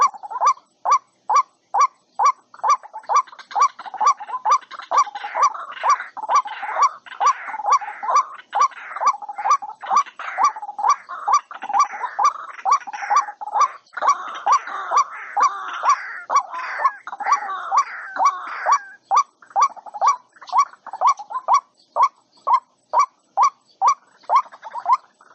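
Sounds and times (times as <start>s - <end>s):
white-breasted waterhen croaking calls: 0.0s - 25.3s.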